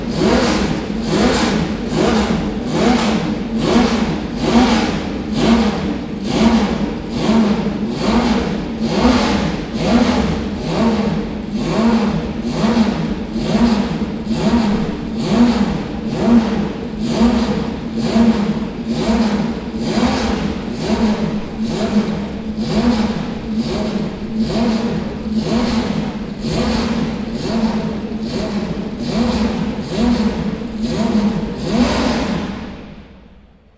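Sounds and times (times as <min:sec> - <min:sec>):
Porsche 917 KH racing car: 0:00.0 - 0:33.7.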